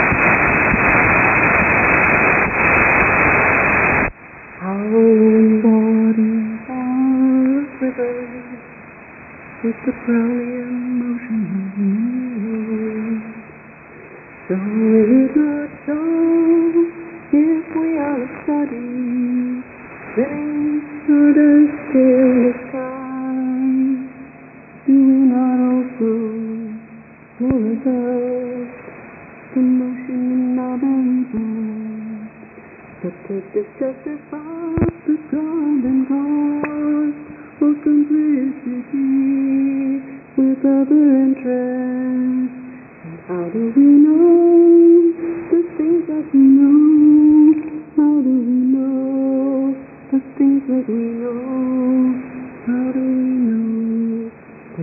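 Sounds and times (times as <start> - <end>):
shortwave radio signal on 9450 kHz: 0.0 - 54.8.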